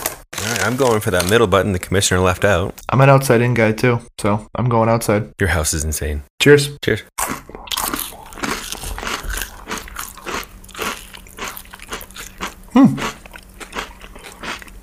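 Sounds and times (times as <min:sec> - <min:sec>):
person crunching multi-seed crackers: 0:00.0 - 0:01.8, 0:07.2 - 0:14.8
speech: 0:00.6 - 0:07.6, 0:12.8 - 0:13.1.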